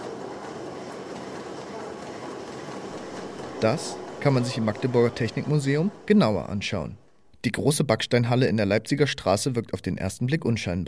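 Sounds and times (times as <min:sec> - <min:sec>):
steam engine: 0:00.0 - 0:07.6
speech: 0:03.6 - 0:10.8.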